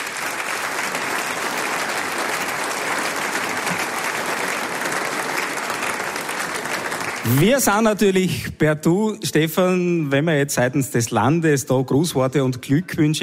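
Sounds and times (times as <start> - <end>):
audience applause: 0.0 - 8.2
speech: 7.2 - 13.2.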